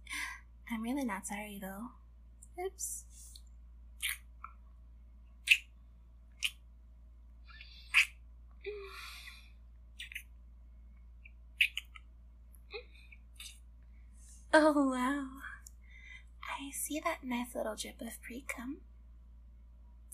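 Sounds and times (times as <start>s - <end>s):
low steady hum: 0.0s - 20.1s
speech: 0.7s - 2.0s, 2.6s - 3.3s, 14.6s - 15.4s, 16.6s - 18.9s
wet mouth sucking and smacking on skin: 7.5s - 8.2s, 10.0s - 10.3s.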